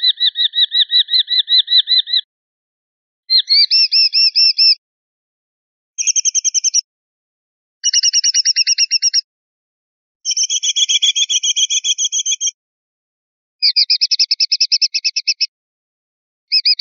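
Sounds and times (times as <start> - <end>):
sparrowhawk calls: 0.0 - 2.3, 3.3 - 4.8, 6.0 - 6.8, 7.8 - 9.2, 10.3 - 12.5, 13.6 - 15.5, 16.5 - 16.7.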